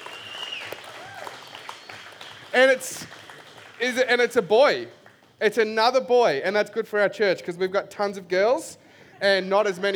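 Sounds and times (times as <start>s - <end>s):
whistles and cheers: 0.0s - 2.4s
crowd applauding: 0.0s - 5.4s
speech: 2.6s - 3.2s, 3.8s - 9.9s.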